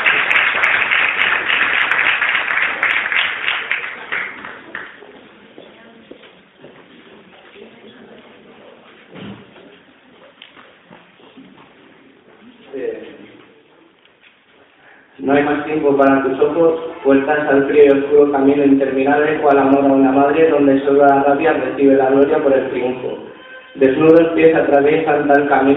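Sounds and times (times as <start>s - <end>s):
audience applause: 0.0s - 5.1s
faint murmuring: 3.7s - 15.2s
speech: 15.8s - 25.7s.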